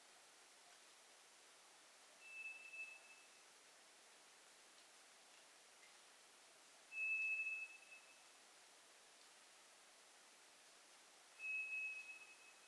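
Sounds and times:
quiet hiss: 0.0s - 12.6s
White's thrush whistle: 2.2s - 3.4s, 6.9s - 8.2s, 11.4s - 12.6s.

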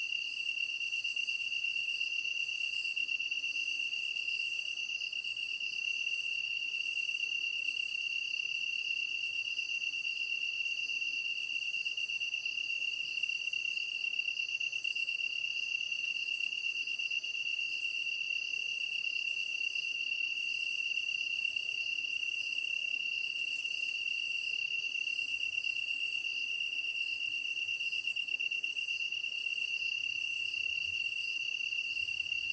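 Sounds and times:
high-pitched chirping from other insects: 0.2s - 32.5s
Japanese tree cricket trilling: 14.3s - 32.5s.

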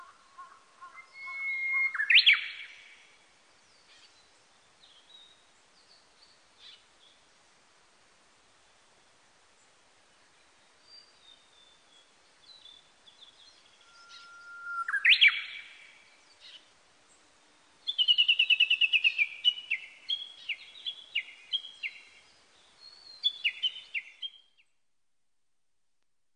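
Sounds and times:
Japanese bush warbler singing: 0.0s - 7.2s, 10.4s - 16.7s, 17.8s - 24.7s.

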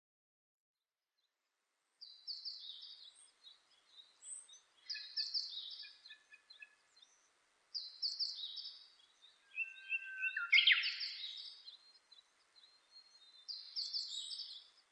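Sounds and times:
Japanese thrush singing clear high whistled phrases: 4.2s - 14.7s.

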